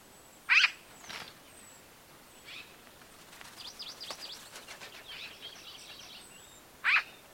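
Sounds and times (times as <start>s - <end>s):
Eurasian magpie Pica pica giving harsh calls: 0.5s - 0.8s, 6.8s - 7.2s.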